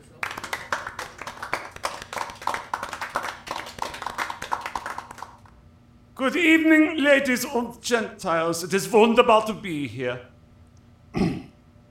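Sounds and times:
audience applause: 0.0 - 5.5
speech: 6.2 - 10.3.

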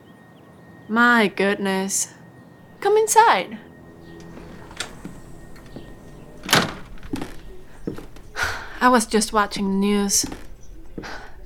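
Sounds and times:
speech: 0.9 - 2.2, 2.8 - 3.7, 8.8 - 10.4
front door closing: 2.7 - 11.4.

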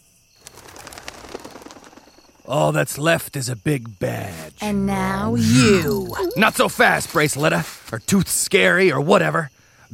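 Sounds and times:
flock of pigeons flapping wings in flight: 0.4 - 2.4
speech: 2.5 - 9.9.

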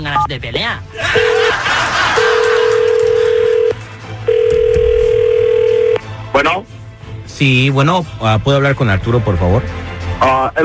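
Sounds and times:
speech: 0.0 - 2.3, 6.4 - 10.6
laughter: 0.9 - 3.6
telephone ringback tone: 1.2 - 1.6, 2.2 - 6.0.

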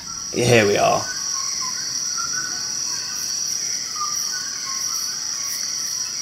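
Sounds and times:
steady high buzzing drone: 0.0 - 2.0
dawn chorus birds chirping and whistling: 0.0 - 6.2
speech: 0.3 - 1.2.

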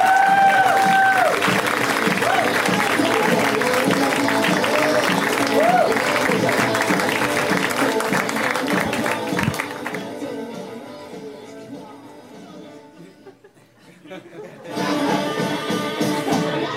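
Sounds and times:
high whoops: 0.0 - 1.6, 2.2 - 2.7, 5.5 - 6.1
crowd clapping and cheering for a comedian: 0.0 - 10.3
laughter: 12.9 - 16.6.

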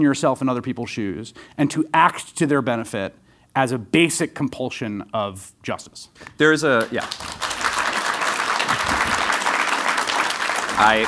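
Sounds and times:
speech: 0.0 - 7.4, 10.8 - 11.0
crowd applauding: 6.8 - 11.0.

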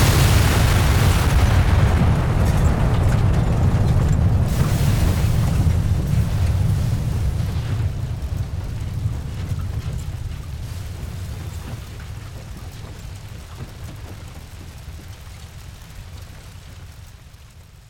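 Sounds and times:
shockwave explosion impact: 0.0 - 11.3.

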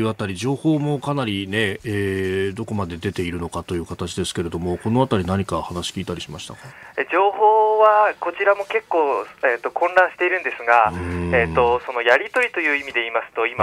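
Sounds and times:
speech: 0.0 - 13.6
voice over a public payphone line: 7.0 - 13.6.

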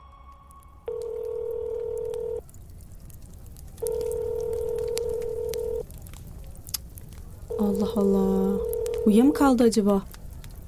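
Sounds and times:
phone ringback tones: 0.9 - 2.4, 3.8 - 5.8, 8.6 - 9.2
speech: 7.8 - 10.1.

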